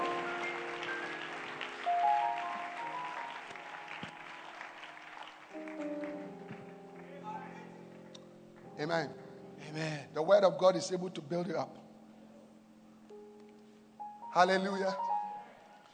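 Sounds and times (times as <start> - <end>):
audience clapping hands: 0.0 - 7.3
speech: 8.8 - 11.8, 14.4 - 15.1.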